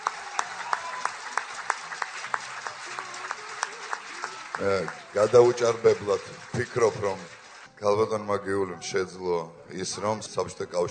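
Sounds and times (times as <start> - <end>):
audience applause for a jazz singer at an evening tribute event: 0.0 - 7.7
speech: 4.6 - 10.8.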